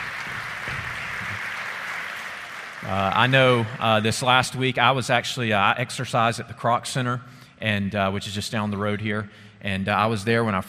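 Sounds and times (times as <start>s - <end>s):
crowd applauding: 0.0s - 4.4s
speech: 2.9s - 10.6s.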